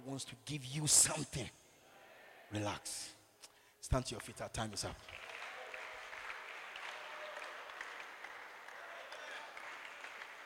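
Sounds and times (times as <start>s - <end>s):
speech: 0.1s - 1.6s, 2.5s - 3.2s, 3.8s - 5.3s
audience clapping: 4.2s - 10.4s.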